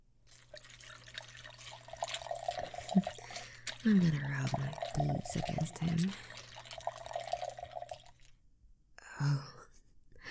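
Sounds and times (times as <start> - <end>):
honey being poured: 0.2 - 8.4
speech: 3.8 - 6.3.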